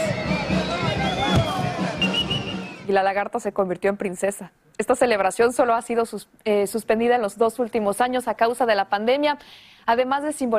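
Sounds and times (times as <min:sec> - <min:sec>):
crowd of wedding guests shouting and cheering: 0:00.0 - 0:02.9
speech: 0:02.9 - 0:10.5.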